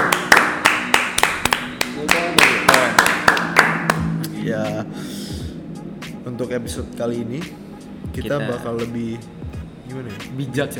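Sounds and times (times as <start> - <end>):
hand clapping: 0.0 - 4.1
speech: 4.4 - 5.1, 6.3 - 7.6, 8.2 - 10.7.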